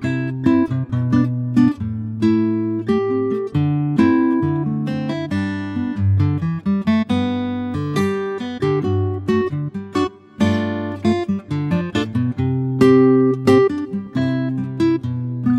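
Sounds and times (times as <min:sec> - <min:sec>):
acoustic guitar in G: 0:00.0 - 0:15.5.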